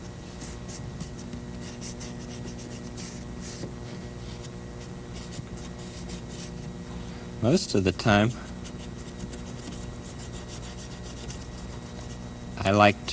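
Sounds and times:
drawing strokes scraping on the side of a toolbox: 0.0s - 6.7s, 8.0s - 12.3s
speech: 7.4s - 8.5s, 12.7s - 13.1s.

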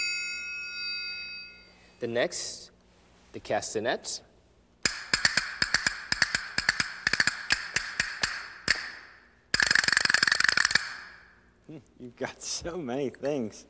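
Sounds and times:
speech: 2.0s - 2.7s, 3.3s - 4.3s, 12.0s - 13.6s
percussion ratchet noisemaker rattling: 4.9s - 8.9s, 9.5s - 11.2s.

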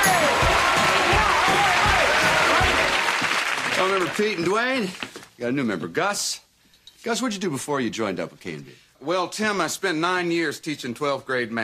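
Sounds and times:
studio audience applause welcoming guests on the Tool Time set: 0.0s - 5.0s
speech: 4.0s - 6.4s, 7.0s - 11.6s.

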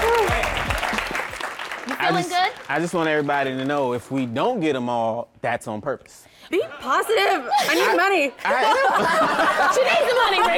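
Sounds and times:
audience applause: 0.0s - 4.4s
speech: 2.1s - 10.5s
laughter: 6.6s - 10.5s.

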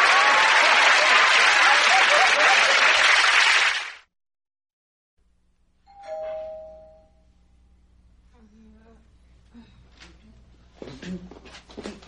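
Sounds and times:
laughter: 0.1s - 3.3s
doorbell ringing: 5.9s - 7.4s.

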